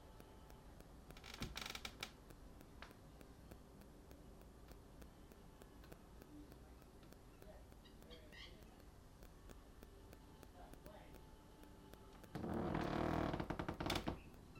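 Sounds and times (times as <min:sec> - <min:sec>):
chair creaking: 0:01.1 - 0:02.2, 0:12.2 - 0:14.4.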